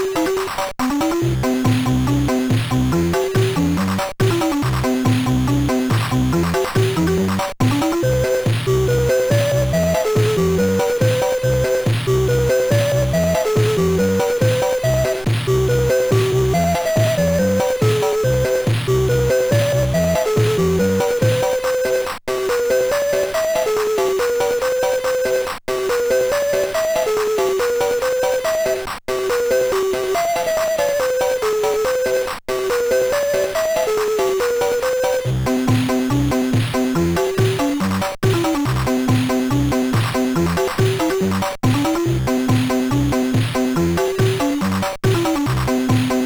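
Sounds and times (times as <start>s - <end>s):
easy chiptune melody on MOS6581R3 chip: 0.1s - 46.2s.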